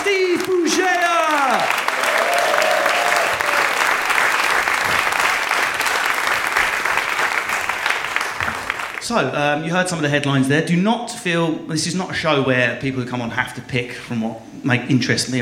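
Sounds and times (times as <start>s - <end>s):
loud sustained applause from a large audience: 0.0s - 9.0s
speech: 0.4s - 1.7s, 9.1s - 15.4s.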